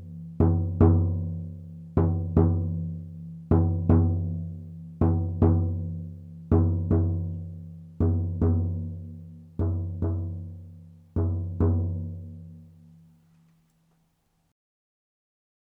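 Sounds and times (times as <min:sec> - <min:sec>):
drum: 0:00.0 - 0:12.4.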